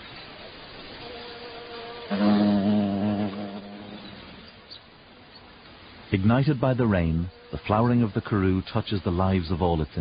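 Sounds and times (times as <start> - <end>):
bee buzzing while collecting flower oil: 1.0 - 4.6, 7.1 - 7.9
speech: 6.1 - 9.9.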